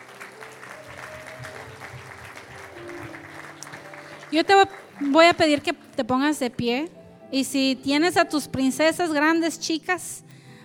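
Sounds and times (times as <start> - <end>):
audience applause: 0.0 - 6.0
speech: 4.3 - 10.2.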